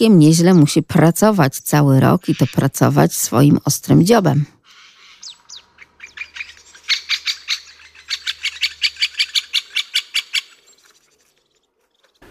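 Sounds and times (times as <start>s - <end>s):
speech: 0.0s - 4.6s
Eurasian bullfinch call: 4.7s - 12.2s.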